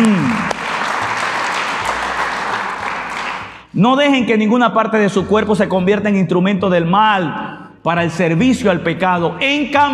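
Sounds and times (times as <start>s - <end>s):
audience clapping: 0.0s - 3.7s
speech: 3.8s - 9.9s.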